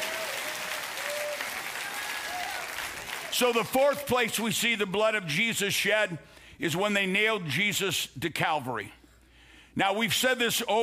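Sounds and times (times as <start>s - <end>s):
audience applause in praise: 0.0s - 3.8s
speech: 3.4s - 9.0s, 9.8s - 10.8s.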